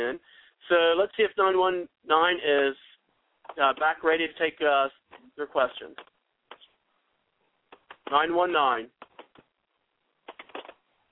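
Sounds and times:
speech: 0.0 - 2.9, 3.5 - 6.1, 8.1 - 9.0
typing on a keyboard over a phone line: 7.7 - 8.2, 8.9 - 9.5, 10.2 - 10.8.

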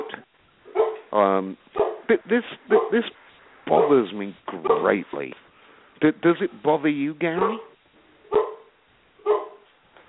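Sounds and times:
dog barking: 0.0 - 1.1, 1.7 - 2.1, 2.7 - 3.1, 3.7 - 5.0, 7.3 - 9.7
speech: 1.2 - 5.4, 6.0 - 7.7.

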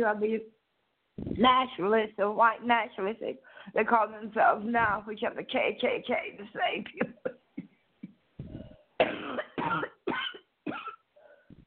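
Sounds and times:
speech: 0.0 - 0.6, 1.2 - 7.4
person coughing: 6.9 - 11.0.

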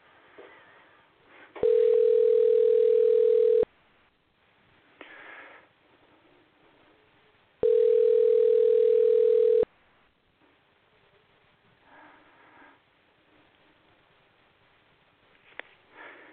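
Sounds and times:
soft breathing: 0.0 - 1.6, 5.0 - 7.0, 11.7 - 13.8, 15.4 - 16.3
telephone dial tone, call not connecting: 1.6 - 3.7, 7.6 - 9.7.

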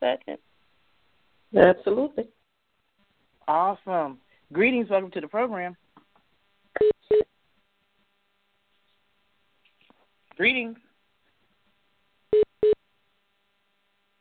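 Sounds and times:
speech: 0.0 - 0.6, 1.5 - 2.4, 3.5 - 5.8, 10.4 - 10.8
person speaking a greeting: 3.4 - 5.8, 10.3 - 10.8
telephone line beeps while connecting caller: 6.8 - 7.3, 12.4 - 12.8.

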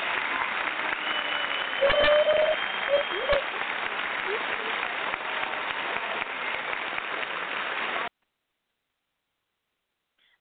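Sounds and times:
round of applause: 0.0 - 8.1.

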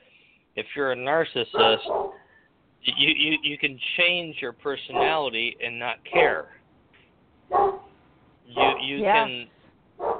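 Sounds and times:
speech: 0.6 - 2.2, 2.8 - 6.6, 7.5 - 7.8, 8.5 - 9.6
dog barking: 1.5 - 2.2, 4.8 - 5.4, 6.1 - 6.5, 7.5 - 7.9, 8.5 - 9.0, 10.0 - 10.1.

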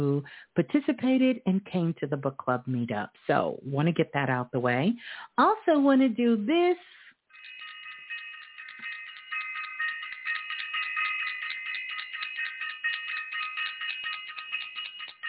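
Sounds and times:
speech: 0.0 - 7.0
signal or alarm bell ringing: 7.3 - 15.2.

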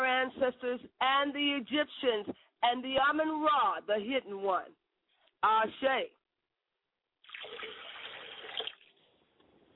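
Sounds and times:
speech: 0.2 - 4.8, 5.4 - 6.2
pouring liquid libation: 7.2 - 9.1.

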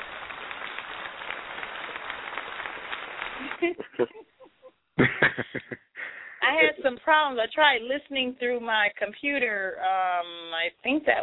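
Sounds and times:
crowd applause sound effect: 0.0 - 4.1
laughter: 3.4 - 6.8
speech: 3.6 - 4.3, 5.0 - 11.2.

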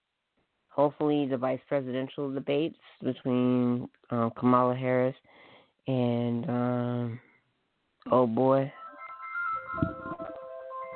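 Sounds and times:
speech: 0.8 - 7.3, 8.0 - 8.8, 9.7 - 10.2
mobile phone melodic electronic ringtone: 8.7 - 10.9.

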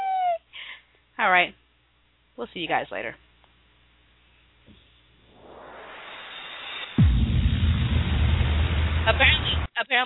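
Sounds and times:
speech: 1.2 - 1.6, 2.4 - 3.2, 9.0 - 10.0
storm wind: 6.9 - 9.7.

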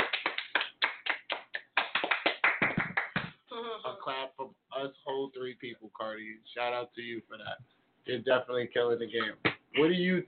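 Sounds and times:
people clapping hands: 0.0 - 3.4, 9.2 - 9.6
speech: 3.8 - 10.2.

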